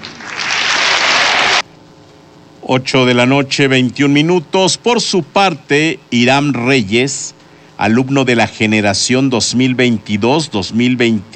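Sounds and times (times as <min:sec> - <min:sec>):
audience applause at a graduation ceremony of a state teacher-training institute: 0:00.0 - 0:01.6
speech: 0:02.7 - 0:11.3.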